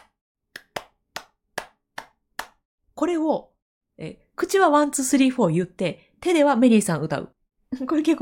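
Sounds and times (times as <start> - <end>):
hand clapping in an uneven rhythmic pattern: 0.0 - 2.6
speech: 3.0 - 8.2.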